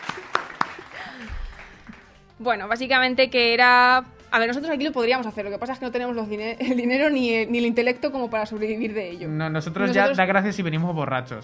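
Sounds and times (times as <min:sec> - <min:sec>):
applause: 0:00.0 - 0:02.3
speech: 0:02.4 - 0:11.4.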